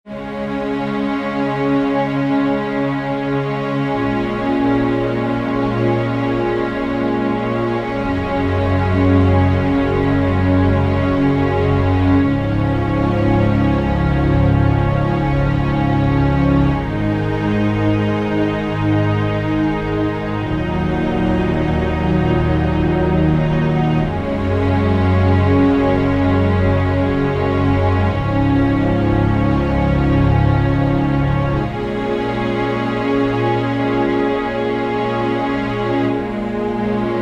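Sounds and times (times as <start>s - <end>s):
underscore synth pad: 0.1s - 37.2s.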